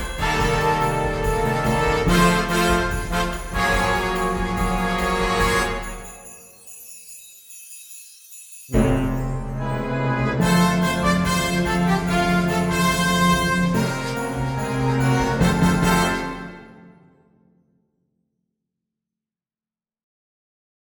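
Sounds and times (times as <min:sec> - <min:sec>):
samba band playing: 0:00.0 - 0:06.3, 0:08.8 - 0:16.9.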